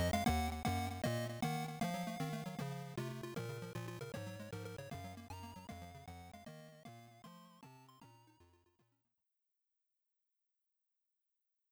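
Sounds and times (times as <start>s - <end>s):
PSG chiptune background music: 0.0s - 8.6s.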